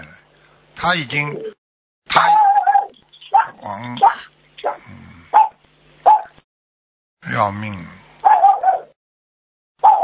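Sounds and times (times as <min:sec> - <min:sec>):
speech: 0:00.8 - 0:02.4, 0:03.6 - 0:05.1, 0:07.3 - 0:08.0
family dog barking: 0:02.3 - 0:06.4, 0:08.2 - 0:09.0, 0:09.8 - 0:10.0.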